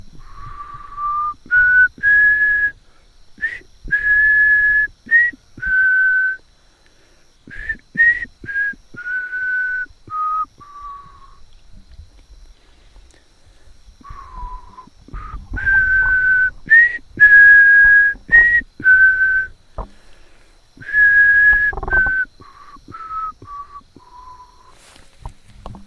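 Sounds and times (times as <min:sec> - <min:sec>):
person whistling: 0:00.3 - 0:02.8, 0:03.4 - 0:06.4, 0:07.5 - 0:11.4, 0:14.0 - 0:19.6, 0:20.8 - 0:24.8.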